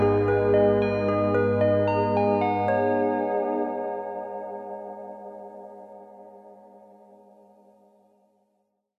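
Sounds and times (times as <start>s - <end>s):
Yamaha DX 7 synthesizer: 0.0s - 6.8s.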